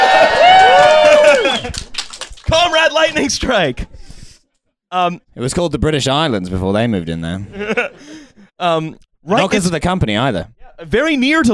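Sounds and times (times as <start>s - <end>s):
audience cheering: 0.0s - 3.1s
speech: 3.1s - 4.1s, 4.9s - 11.5s.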